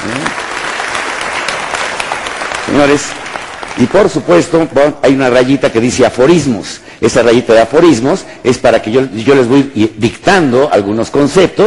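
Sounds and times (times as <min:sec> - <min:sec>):
audience applause: 0:00.0 - 0:04.4
speech: 0:02.7 - 0:11.6.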